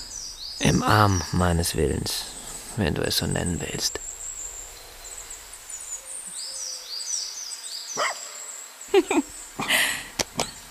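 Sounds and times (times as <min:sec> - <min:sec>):
high thin birdsong chirping: 0:00.0 - 0:10.6
speech: 0:00.6 - 0:04.0
dog barking: 0:08.0 - 0:08.4.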